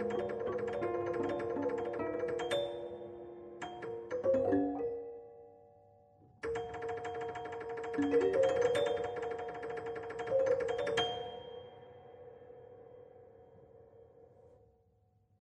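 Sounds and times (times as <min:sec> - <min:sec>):
prepared piano sonata: 0:00.0 - 0:05.8, 0:06.4 - 0:12.3.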